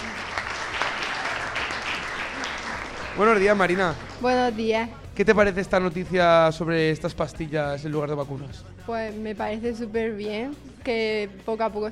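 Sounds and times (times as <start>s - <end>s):
audience clapping: 0.0s - 4.6s
speech: 3.2s - 11.9s.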